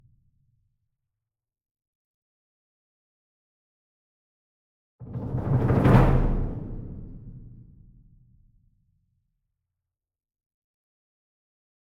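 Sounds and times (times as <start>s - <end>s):
single 66 Inch drum roll with medium soft beater: 5.0s - 7.8s.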